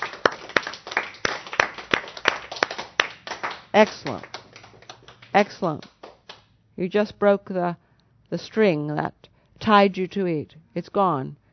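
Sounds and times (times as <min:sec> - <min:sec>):
hands clapping: 0:00.0 - 0:06.5
speech: 0:03.8 - 0:04.3, 0:05.3 - 0:05.9, 0:06.8 - 0:11.4.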